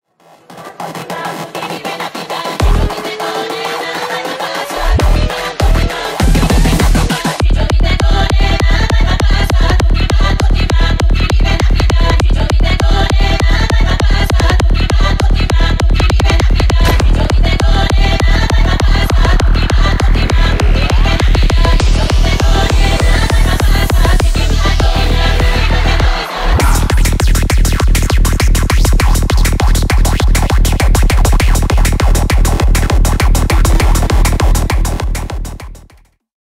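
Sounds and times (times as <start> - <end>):
Balkan remix at 200 bpm: 0.2 - 35.9.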